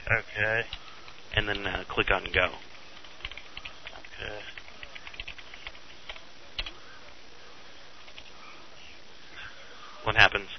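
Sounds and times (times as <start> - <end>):
soft steady hiss: 0.0 - 10.5
speech: 0.1 - 2.7, 4.2 - 4.5, 10.0 - 10.5
typing on a laptop keyboard: 0.7 - 6.8, 8.0 - 8.3.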